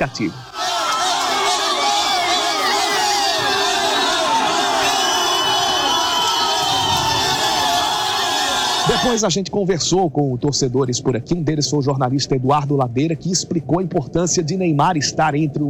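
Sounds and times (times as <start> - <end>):
speech: 0.0 - 0.5, 8.9 - 15.6
Brazilian fans cheering and shouting: 0.0 - 9.2
overlapping chatter: 0.0 - 9.2.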